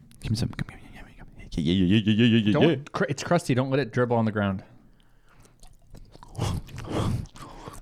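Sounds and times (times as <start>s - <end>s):
speech: 0.3s - 0.8s, 1.6s - 4.7s
wet chewing of crunchy food: 4.8s - 7.8s
mouth smacking: 4.9s - 7.8s.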